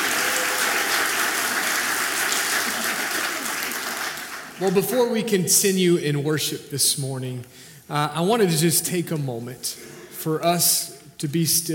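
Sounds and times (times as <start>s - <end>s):
round of applause: 0.0s - 4.9s
speech: 4.6s - 11.7s.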